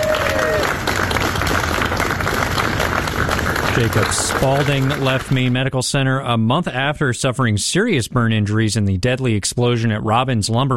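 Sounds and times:
crowd applause: 0.0s - 5.7s
speech: 3.8s - 10.7s.

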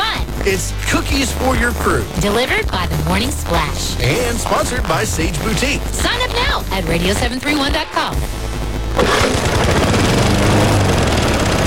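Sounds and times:
speech: 0.4s - 10.0s
small old gasoline lawn mower engine running: 9.0s - 11.6s.

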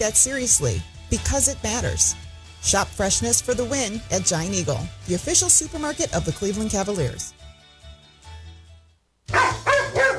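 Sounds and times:
speech: 0.0s - 7.4s
poodle barking: 9.3s - 10.1s.

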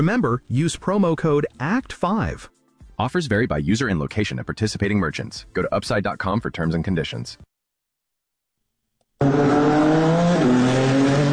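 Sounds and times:
speech: 0.0s - 7.5s, 9.2s - 9.6s
race car engines roaring along city streets: 9.2s - 11.3s.

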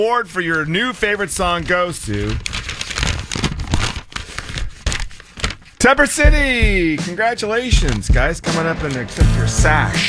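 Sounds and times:
speech: 0.0s - 2.6s, 5.8s - 10.0s
paper envelope rustling as it is opened at a music award announcement: 0.0s - 9.3s.

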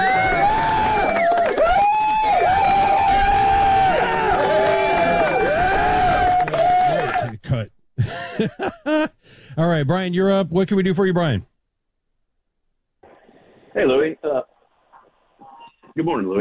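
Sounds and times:
applause and cheering: 0.0s - 7.4s
laughter: 6.4s - 9.2s
speech: 9.6s - 11.5s, 13.8s - 14.5s, 16.0s - 16.3s.

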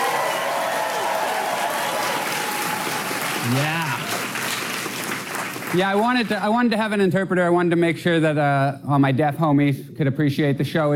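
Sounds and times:
audience applause: 0.0s - 6.4s
speech: 3.4s - 3.8s, 5.7s - 10.9s.

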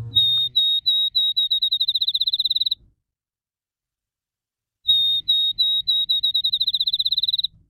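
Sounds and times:
field sparrow song: 0.0s - 2.8s, 4.9s - 7.6s.

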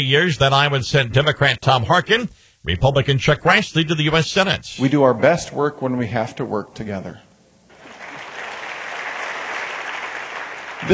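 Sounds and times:
speech: 0.0s - 7.3s
audience applause: 7.7s - 10.9s.

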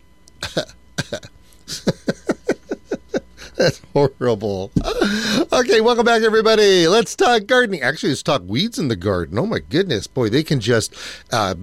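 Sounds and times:
person coughing: 0.4s - 1.9s, 4.8s - 5.5s
laughter: 0.4s - 4.2s, 4.8s - 5.6s
speech: 3.6s - 11.6s.

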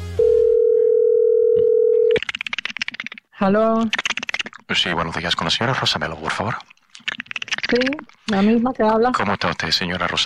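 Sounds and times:
telephone dial tone while a call is being placed: 0.2s - 2.2s
speech: 3.4s - 4.0s, 4.7s - 6.7s, 7.7s - 10.2s.

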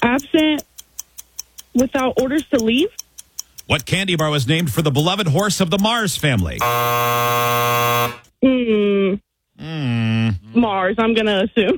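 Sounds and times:
speech: 0.2s - 0.7s, 1.8s - 3.0s, 3.7s - 11.7s
quiz show time-up buzzer: 6.6s - 8.3s.

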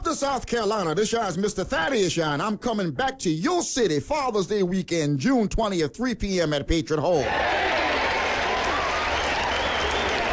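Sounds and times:
speech: 0.2s - 7.8s
audience clapping: 7.2s - 10.3s.

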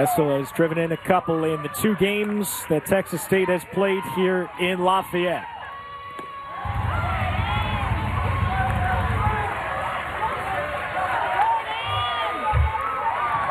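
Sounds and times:
speech: 0.0s - 5.5s
baseball stadium crowd cheering: 0.0s - 13.5s
low rumble: 6.6s - 10.6s.

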